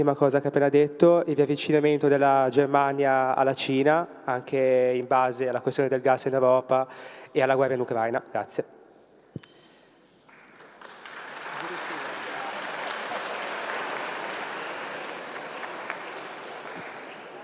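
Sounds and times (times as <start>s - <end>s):
speech: 0.0s - 8.8s
audience applause: 10.3s - 17.4s.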